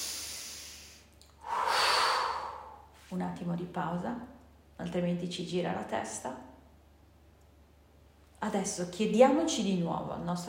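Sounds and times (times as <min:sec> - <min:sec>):
slow deep breath through the nose and mouth: 0:00.0 - 0:03.0
speech: 0:03.1 - 0:06.5, 0:08.4 - 0:10.4.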